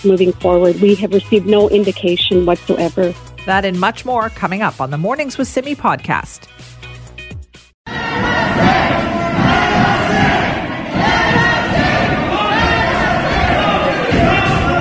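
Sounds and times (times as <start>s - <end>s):
speech: 0.0s - 6.7s
protest crowd shouting against stay-at-home orders at Michigan's capital: 7.9s - 14.7s.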